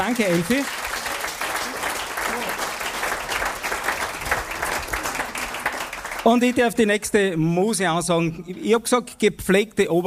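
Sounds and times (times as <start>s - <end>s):
speech: 0.0s - 0.8s, 6.3s - 10.0s
audience applause: 0.0s - 6.7s.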